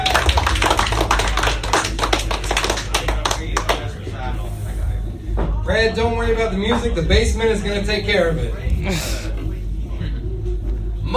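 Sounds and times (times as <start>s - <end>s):
comedy club audience applause: 0.0s - 3.9s
crowd voices: 0.0s - 11.1s
speech: 5.8s - 9.2s.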